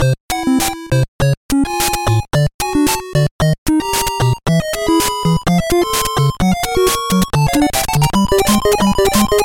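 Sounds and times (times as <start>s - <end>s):
background music: 0.3s - 9.4s.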